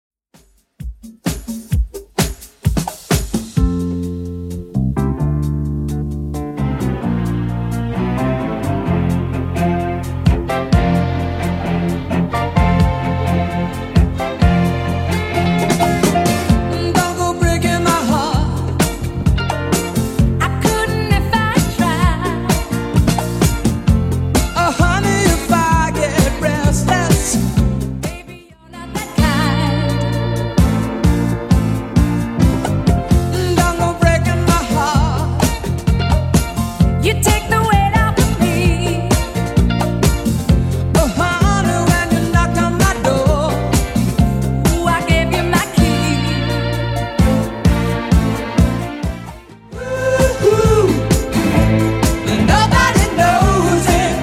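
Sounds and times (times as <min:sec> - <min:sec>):
1970s style music at 130 BPM: 0:00.3 - 0:54.2.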